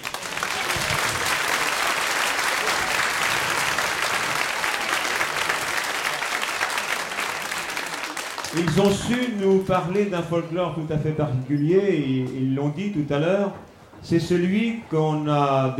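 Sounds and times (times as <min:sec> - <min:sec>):
audience applause: 0:00.0 - 0:09.9
speech: 0:08.6 - 0:15.7.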